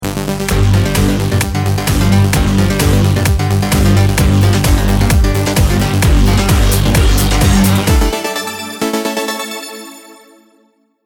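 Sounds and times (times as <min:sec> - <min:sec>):
music: 0:00.0 - 0:11.0.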